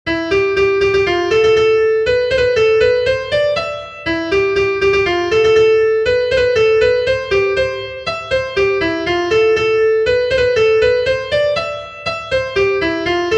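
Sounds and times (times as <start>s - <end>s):
American folk melody on piano: 0.1s - 13.3s.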